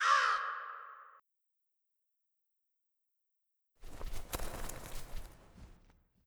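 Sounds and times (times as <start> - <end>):
crow: 0.0 - 1.2.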